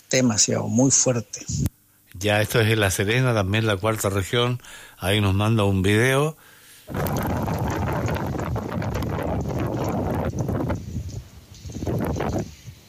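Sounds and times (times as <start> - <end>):
speech: 0.1 - 7.4
strong wind in La Serena Chile buffeting the microphone: 6.9 - 12.8.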